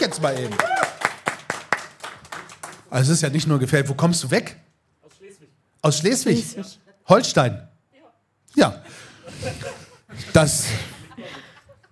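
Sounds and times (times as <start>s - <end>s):
speech: 0.0s - 0.8s, 2.9s - 4.6s, 5.8s - 7.7s, 8.5s - 11.4s
hand clapping: 0.0s - 2.9s
laughter: 8.8s - 11.8s.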